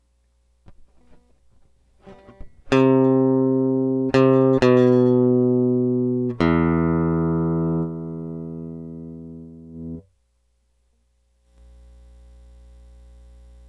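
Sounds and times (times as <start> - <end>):
electric guitar: 0.7 - 10.0.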